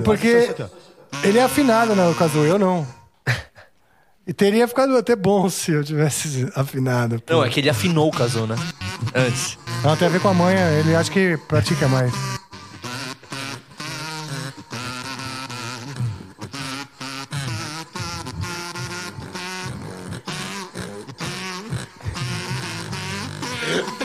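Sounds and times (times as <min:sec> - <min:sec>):
laughter: 0:00.0 - 0:02.5, 0:07.8 - 0:12.4, 0:20.2 - 0:24.0
speech: 0:00.0 - 0:03.4, 0:04.3 - 0:12.4
snoring-like raspy grunting noise: 0:07.5 - 0:24.0.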